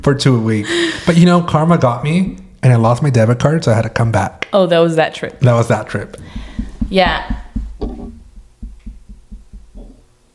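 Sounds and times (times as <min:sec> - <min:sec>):
speech: 0:00.0 - 0:07.4
dull low thuds: 0:06.2 - 0:10.1
table bumping against microphone: 0:06.2 - 0:10.1.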